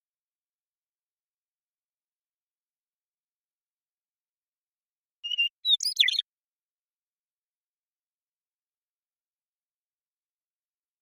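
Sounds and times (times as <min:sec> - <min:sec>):
Western meadowlark song: 0:05.2 - 0:06.2.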